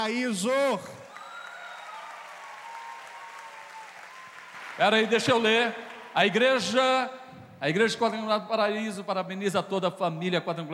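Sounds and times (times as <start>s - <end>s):
speech: 0.0s - 1.0s, 4.8s - 10.7s
audience applauding loudly: 0.6s - 6.9s.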